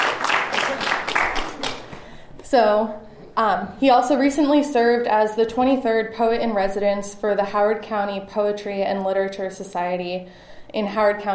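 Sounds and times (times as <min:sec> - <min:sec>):
audience clapping: 0:00.0 - 0:02.2
speech: 0:02.5 - 0:11.3.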